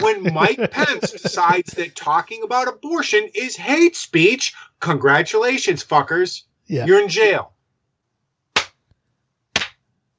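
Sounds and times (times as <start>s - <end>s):
laughter: 0.0s - 2.0s
speech: 0.1s - 7.5s
slow clap: 8.6s - 8.8s, 9.5s - 9.8s.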